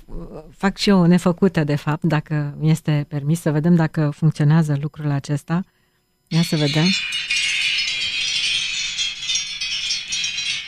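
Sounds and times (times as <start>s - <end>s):
speech: 0.3s - 7.4s
replica bell ringing: 6.3s - 10.6s.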